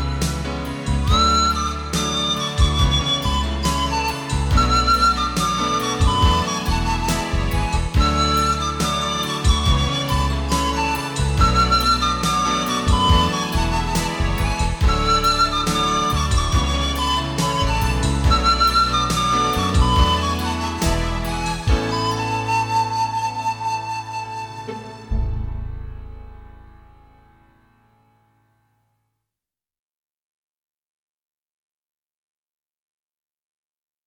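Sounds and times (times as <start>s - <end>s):
flute: 0.0s - 27.2s.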